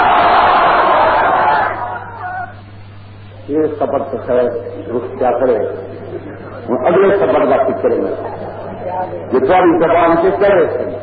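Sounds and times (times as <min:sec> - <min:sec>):
crowd at a religious gathering shouting a takbir slogan in unison: 0:00.0 - 0:02.5
speech: 0:03.8 - 0:05.9, 0:06.7 - 0:08.4, 0:09.0 - 0:10.9.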